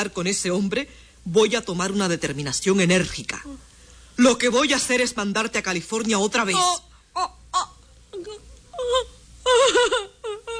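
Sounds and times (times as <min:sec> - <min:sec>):
speech: 0:00.0 - 0:10.4
woman crying and moaning: 0:06.6 - 0:10.5.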